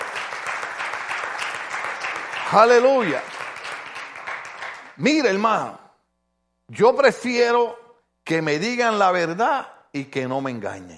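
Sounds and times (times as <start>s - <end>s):
audience applause: 0.0s - 5.0s
speech: 2.5s - 3.3s, 5.0s - 5.8s, 6.7s - 10.9s.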